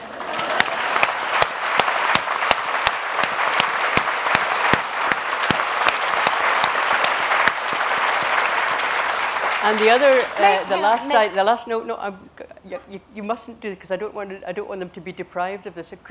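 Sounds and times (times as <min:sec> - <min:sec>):
audience round of applause: 0:00.0 - 0:11.3
speech: 0:09.7 - 0:16.0.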